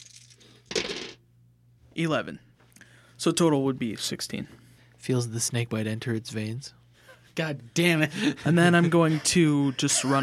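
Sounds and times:
dice rattling on a hard surface: 0:00.0 - 0:01.2
faint hum: 0:00.0 - 0:10.2
speech: 0:02.0 - 0:02.5, 0:03.2 - 0:06.8, 0:07.4 - 0:10.2
laughter: 0:07.1 - 0:10.2.

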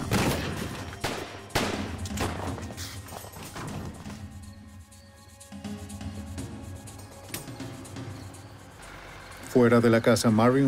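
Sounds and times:
gunfire: 0:00.0 - 0:02.4
speech: 0:09.6 - 0:10.6.

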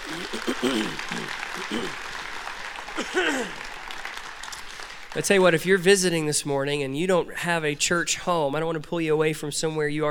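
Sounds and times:
audience applause: 0:00.0 - 0:06.2
speech: 0:00.6 - 0:02.0, 0:05.2 - 0:10.0.

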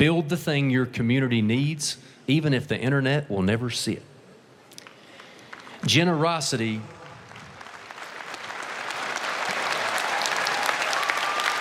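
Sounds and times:
speech: 0:00.0 - 0:04.1, 0:05.8 - 0:07.0
audience applause: 0:07.0 - 0:11.5.

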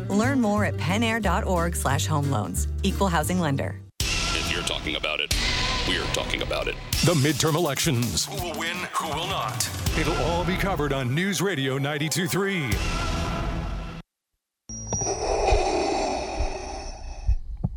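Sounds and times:
speech: 0:00.1 - 0:03.8, 0:04.6 - 0:13.2
mechanical breathing through a mask: 0:15.1 - 0:17.6.

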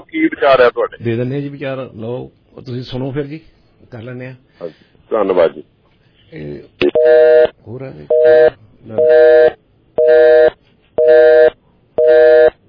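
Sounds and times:
speech: 0:00.1 - 0:05.7, 0:06.3 - 0:11.3
telephone busy tone after a caller's line drops: 0:06.8 - 0:07.5, 0:08.1 - 0:12.6.

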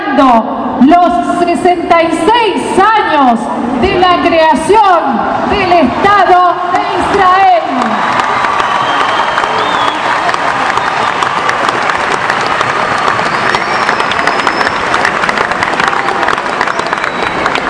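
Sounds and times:
speech: 0:00.2 - 0:08.3
crowd cheers and whistles: 0:07.0 - 0:17.6
large audience applause: 0:07.0 - 0:17.6.

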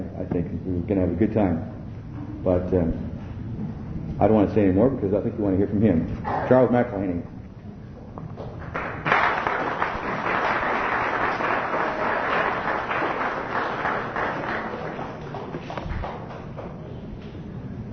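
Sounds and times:
speech: 0:00.9 - 0:01.7, 0:02.4 - 0:03.1, 0:04.2 - 0:07.4
audience clapping: 0:08.4 - 0:17.0.

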